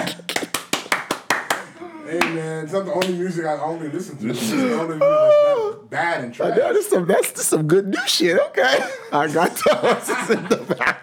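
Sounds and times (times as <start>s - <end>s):
hands clapping in applause: 0.0s - 3.2s
speech: 2.1s - 10.9s
laughter: 8.6s - 11.0s.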